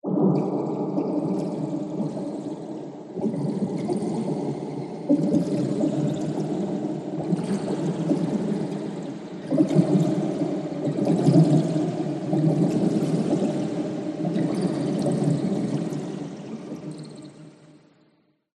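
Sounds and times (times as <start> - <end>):
science fiction alien planet weird watery bubbles movements: 0.0 - 17.9.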